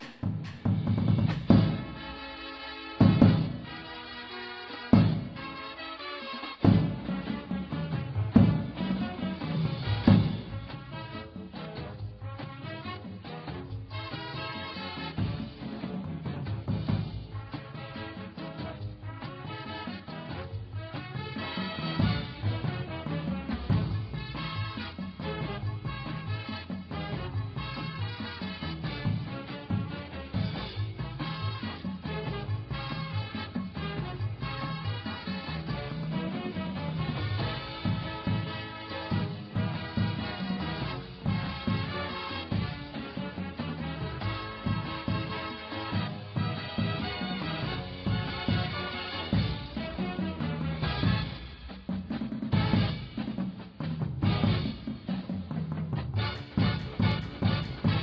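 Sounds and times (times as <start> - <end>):
bass: 0.0 - 2.3, 6.6 - 58.0
drumline: 0.0 - 58.0.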